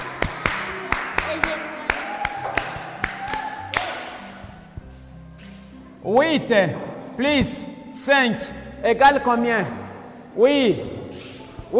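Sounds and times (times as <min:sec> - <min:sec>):
scattered hand claps: 0:00.0 - 0:04.4
speech: 0:06.0 - 0:11.0.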